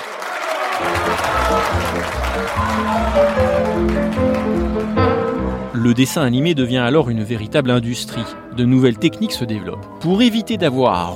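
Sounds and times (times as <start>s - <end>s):
crowd applauding: 0.0s - 5.9s
speech: 0.8s - 4.3s, 5.8s - 11.1s.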